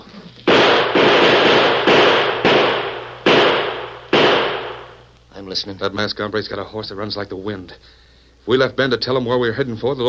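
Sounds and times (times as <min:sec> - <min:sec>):
gunshots fired out a window: 0:00.5 - 0:05.1
speech: 0:05.5 - 0:10.0.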